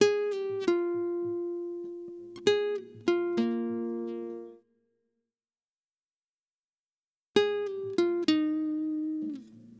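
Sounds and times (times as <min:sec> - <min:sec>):
acoustic guitar: 0:00.0 - 0:04.6, 0:07.4 - 0:09.7.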